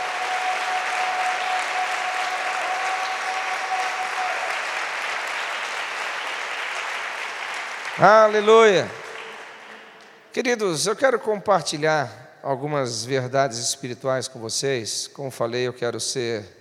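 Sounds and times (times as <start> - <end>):
church congregation applauding during an inauguration service: 0.0 - 10.3
speech: 8.0 - 9.0, 10.4 - 16.5.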